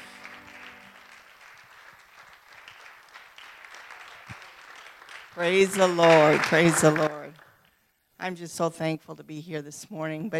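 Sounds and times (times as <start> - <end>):
audience applause: 0.0 - 7.6
speech: 5.4 - 7.1, 8.2 - 10.3.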